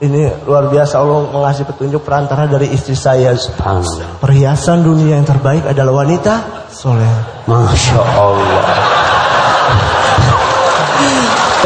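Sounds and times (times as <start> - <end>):
speech: 0.0 - 8.9
laughter: 6.9 - 11.6
crowd clapping in a large indoor hall: 8.2 - 11.6.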